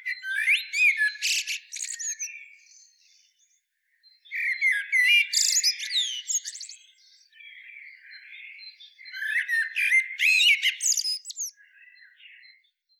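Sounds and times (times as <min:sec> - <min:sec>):
common blackbird singing: 0:00.0 - 0:12.9.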